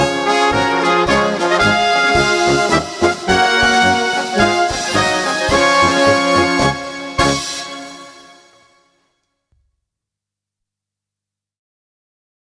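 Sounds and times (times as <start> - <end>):
brass band music: 0.0 - 8.7.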